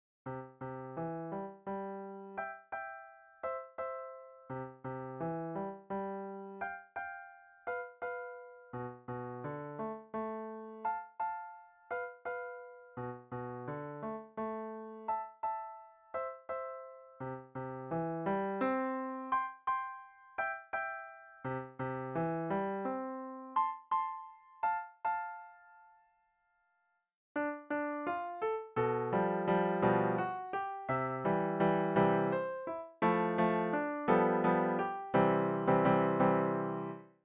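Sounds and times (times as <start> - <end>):
piano: 0.3 - 26.8, 27.4 - 37.2.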